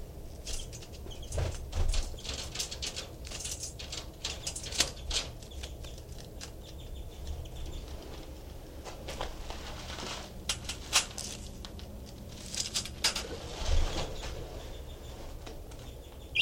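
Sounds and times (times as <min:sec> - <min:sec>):
low hum: 0:00.0 - 0:16.3
pet bird's soft wing flutters and rustling: 0:00.3 - 0:08.3, 0:09.1 - 0:16.0
pet bird giving finch-like chirps: 0:00.5 - 0:02.4, 0:04.3 - 0:08.2, 0:13.9 - 0:16.3.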